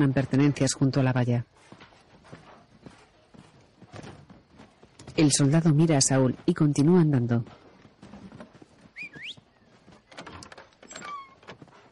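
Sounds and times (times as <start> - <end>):
speech: 0.0 - 1.7, 5.2 - 7.6
storeroom door creaking open: 10.0 - 11.7.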